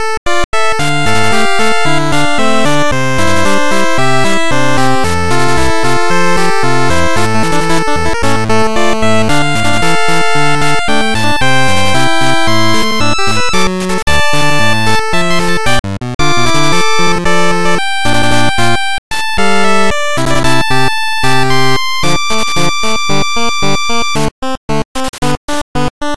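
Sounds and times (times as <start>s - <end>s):
8-bit chiptune music loop: 0.0s - 26.1s.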